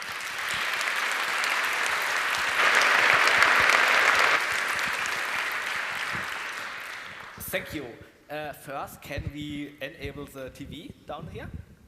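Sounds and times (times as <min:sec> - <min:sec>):
audience applause welcoming speakers: 0:00.0 - 0:07.7
speech: 0:07.5 - 0:11.6.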